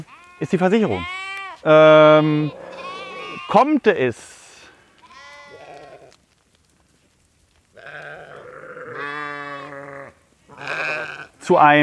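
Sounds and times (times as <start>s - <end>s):
speech: 0.0s - 2.6s, 3.5s - 4.4s, 11.5s - 11.8s
sheep or goats bleating in a livestock herd: 0.0s - 4.1s, 4.9s - 6.2s, 7.7s - 11.5s.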